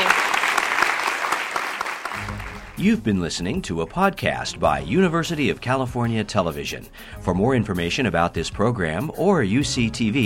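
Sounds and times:
audience applause: 0.0 - 2.8
speech: 2.8 - 10.2.

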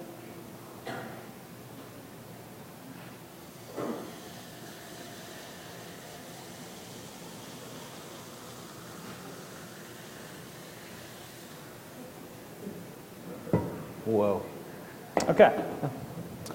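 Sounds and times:
liquid nitrogen poured into a cup and boiling: 2.8 - 14.4
speech: 14.1 - 14.5, 15.3 - 16.0.

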